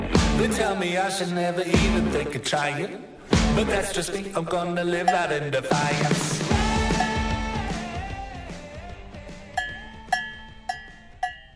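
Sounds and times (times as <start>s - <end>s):
speech: 0.4s - 6.4s
cowbell being played: 5.1s - 5.4s, 6.8s - 7.4s, 9.5s - 11.5s.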